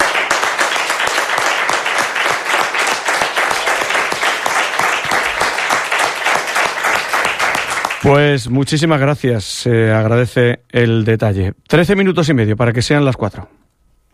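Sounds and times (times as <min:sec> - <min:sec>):
audience applause: 0:00.0 - 0:08.1
speech: 0:08.1 - 0:13.6.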